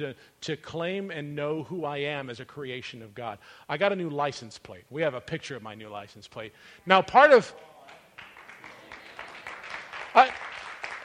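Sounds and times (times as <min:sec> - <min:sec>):
speech: 0:00.0 - 0:07.7, 0:10.1 - 0:10.4
audience applause: 0:07.8 - 0:11.0.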